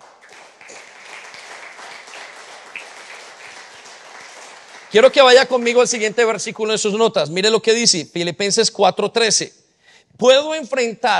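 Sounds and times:
audience applause: 0:00.0 - 0:06.1
speech: 0:04.9 - 0:11.1.

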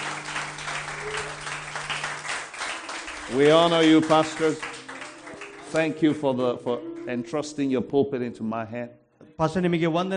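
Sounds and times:
church audience clapping for the pastors: 0:00.0 - 0:06.6
speech: 0:03.3 - 0:04.7, 0:05.7 - 0:10.1.

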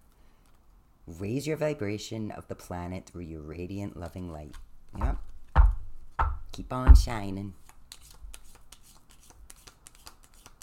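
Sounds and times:
speech: 0:01.1 - 0:05.1, 0:06.6 - 0:07.6
angel oracle cards being shuffled: 0:03.9 - 0:05.8, 0:07.0 - 0:10.6.

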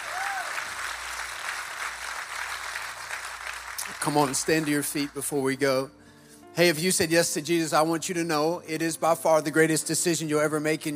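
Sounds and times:
large audience applause: 0:00.0 - 0:05.2
speech: 0:04.0 - 0:06.0, 0:06.6 - 0:10.9.

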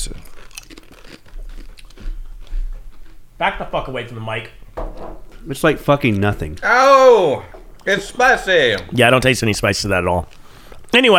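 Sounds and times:
crunching a Mexican Salsa Caliente flavoured snack: 0:00.0 - 0:03.5, 0:09.1 - 0:11.1
speech: 0:03.4 - 0:11.1.

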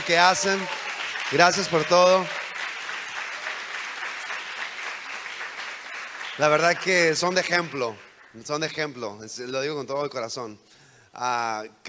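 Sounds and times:
audience applause: 0:00.0 - 0:08.4
speech: 0:00.1 - 0:02.4, 0:06.4 - 0:11.8.

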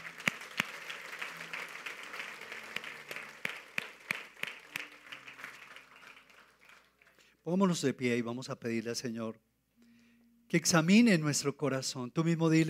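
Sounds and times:
audience applause: 0:00.0 - 0:07.3
speech: 0:07.5 - 0:09.5, 0:10.5 - 0:12.6.

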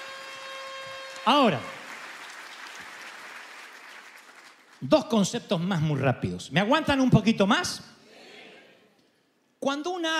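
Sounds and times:
audience at a church service applauding: 0:00.0 - 0:04.8
speech: 0:01.2 - 0:01.8, 0:04.8 - 0:08.0, 0:09.6 - 0:10.1.

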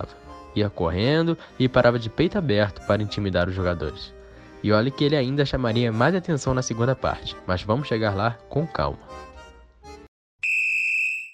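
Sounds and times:
speech: 0:00.0 - 0:09.3
referee's whistle blown for half-time in a football match: 0:10.4 - 0:11.3.

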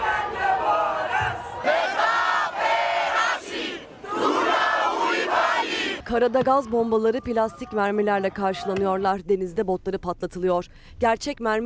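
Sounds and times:
protest crowd chanting: 0:00.0 - 0:06.0
speech: 0:06.1 - 0:11.6.

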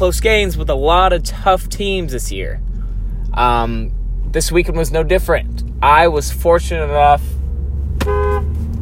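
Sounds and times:
speech: 0:00.0 - 0:02.7, 0:03.4 - 0:07.4
car horn honking: 0:08.0 - 0:08.7.

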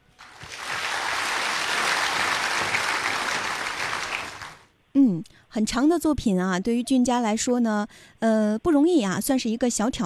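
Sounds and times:
audience applause: 0:00.0 - 0:04.6
speech: 0:05.5 - 0:10.0.

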